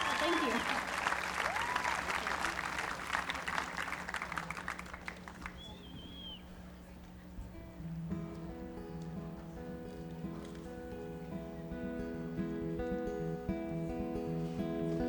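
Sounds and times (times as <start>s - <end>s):
audience whoops: 0.0s - 2.2s
audience applause at folk festival: 0.0s - 6.3s
faint murmur: 2.2s - 15.0s.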